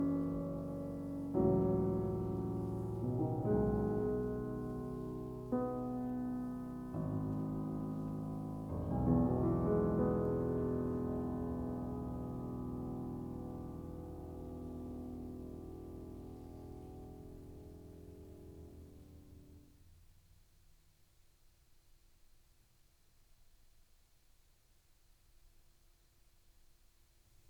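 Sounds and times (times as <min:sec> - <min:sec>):
piano piece: 0:00.0 - 0:19.7.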